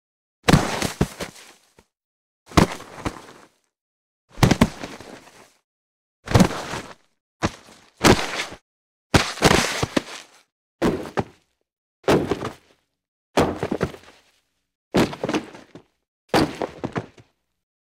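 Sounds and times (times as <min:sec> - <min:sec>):
body falling: 0:00.5 - 0:01.8, 0:02.5 - 0:03.6, 0:04.4 - 0:05.6, 0:06.3 - 0:08.6, 0:09.2 - 0:11.5, 0:12.1 - 0:12.8, 0:13.4 - 0:14.4, 0:15.0 - 0:17.3.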